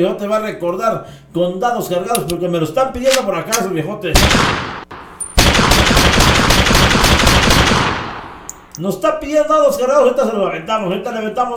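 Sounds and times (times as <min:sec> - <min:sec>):
speech: 0:00.0 - 0:04.8, 0:08.8 - 0:11.5
rapid gunfire sound effect: 0:04.2 - 0:08.3.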